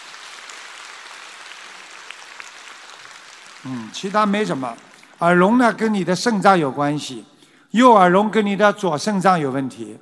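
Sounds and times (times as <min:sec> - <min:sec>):
audience applause: 0:00.0 - 0:05.4
speech: 0:03.6 - 0:10.0.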